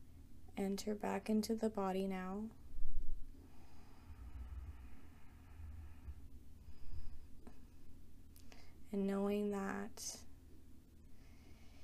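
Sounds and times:
speech: 0:00.6 - 0:02.6, 0:08.9 - 0:10.3
faint rumble: 0:02.5 - 0:08.9
slow deep breath in during a guided relaxation: 0:03.4 - 0:07.4.

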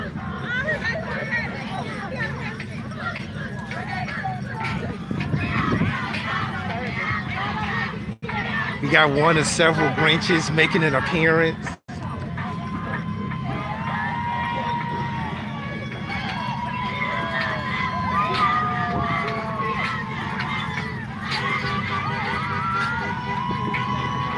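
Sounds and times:
excited crowd cheering at a parade: 0:00.0 - 0:24.3
speech: 0:08.9 - 0:11.8.

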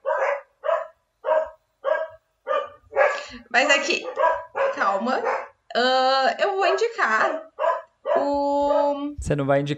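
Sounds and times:
dog barking: 0:00.0 - 0:05.6, 0:07.3 - 0:09.0
speech: 0:03.3 - 0:07.4, 0:08.2 - 0:09.7.

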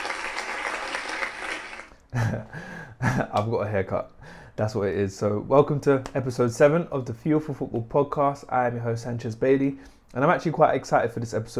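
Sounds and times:
round of applause: 0:00.0 - 0:02.0
speech: 0:02.1 - 0:11.5.

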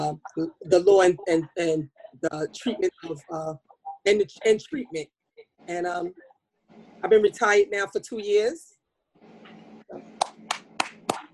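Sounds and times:
speech: 0:00.1 - 0:06.2, 0:06.8 - 0:08.7, 0:09.9 - 0:10.1
audience clapping in a steady rhythm: 0:09.5 - 0:11.3.

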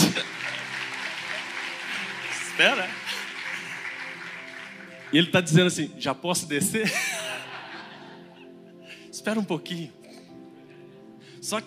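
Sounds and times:
laughter: 0:00.0 - 0:04.5, 0:06.8 - 0:08.7
audience applauding: 0:00.0 - 0:05.8
speech: 0:02.6 - 0:03.1, 0:05.1 - 0:07.2, 0:09.2 - 0:10.0, 0:11.5 - 0:11.6.

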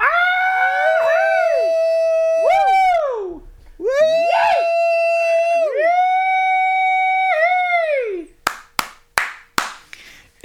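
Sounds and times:
people screaming and cheering from windows: 0:00.0 - 0:08.3
hand claps: 0:08.4 - 0:10.1.

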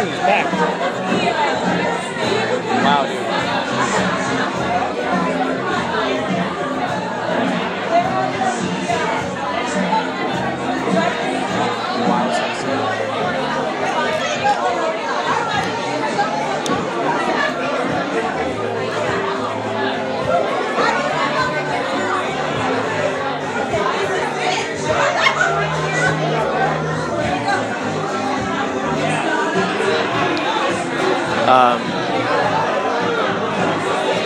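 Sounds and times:
speech: 0:00.0 - 0:03.4, 0:31.5 - 0:31.9
dense crowd chatter: 0:00.0 - 0:34.2
laughter: 0:23.7 - 0:34.2.

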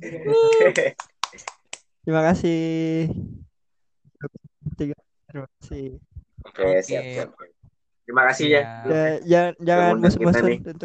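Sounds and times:
speech: 0:00.0 - 0:01.5, 0:02.1 - 0:03.3, 0:04.2 - 0:07.4, 0:08.1 - 0:10.8
hand clapping: 0:00.4 - 0:01.9.

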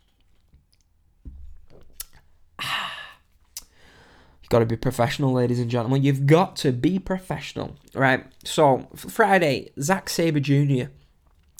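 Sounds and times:
person sipping a drink: 0:01.7 - 0:03.8
breathy exhale: 0:02.6 - 0:04.4
speech: 0:04.5 - 0:11.0.

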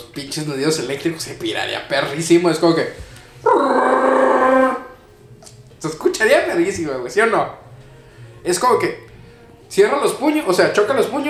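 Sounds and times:
speech: 0:00.2 - 0:03.8, 0:06.6 - 0:07.7, 0:08.4 - 0:09.0, 0:09.7 - 0:11.2
person imitating a Wookiee roar: 0:03.4 - 0:05.0.

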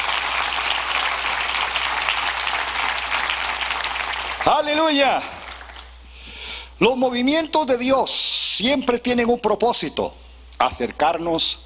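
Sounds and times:
audience applause: 0:00.0 - 0:05.9
speech: 0:04.4 - 0:05.4, 0:06.8 - 0:11.6.

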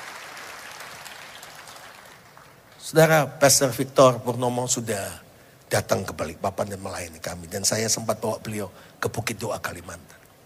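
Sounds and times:
church congregation applauding during a worship service in Balikpapan: 0:00.0 - 0:03.0
speech: 0:02.9 - 0:10.2.

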